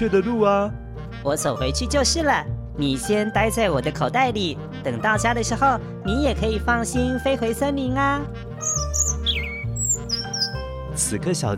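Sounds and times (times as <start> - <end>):
speech: 0.0 - 8.8, 11.0 - 11.5
small bird chirping: 8.6 - 10.7.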